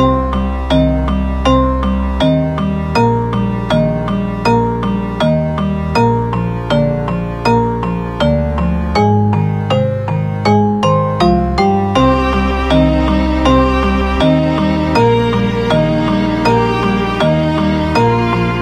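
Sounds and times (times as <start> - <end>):
orchestral music: 0.1 - 18.6.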